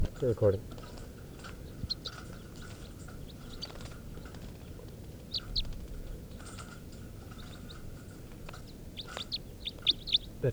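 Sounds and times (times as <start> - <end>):
speech: 0.2 - 0.8
begging calls of bird 432: 1.6 - 10.5.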